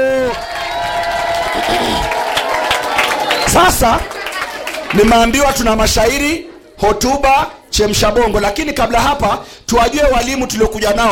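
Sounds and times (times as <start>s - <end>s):
school event audience shouting and whooping for a teacher: 0.0s - 4.9s
school event audience clapping for a teacher: 0.0s - 5.8s
speech: 3.6s - 4.2s, 4.9s - 11.1s.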